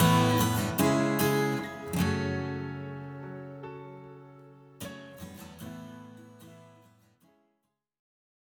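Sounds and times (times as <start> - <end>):
instrumental music: 0.0 - 5.7.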